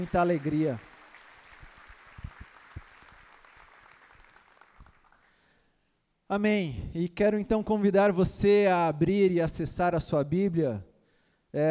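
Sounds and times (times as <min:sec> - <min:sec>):
speech: 0:00.0 - 0:00.9, 0:06.3 - 0:10.9
audience applause: 0:00.0 - 0:05.4.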